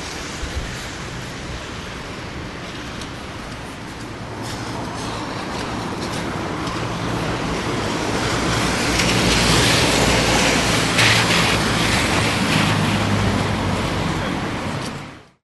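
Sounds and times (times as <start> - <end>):
city sounds: 0.0 - 15.4.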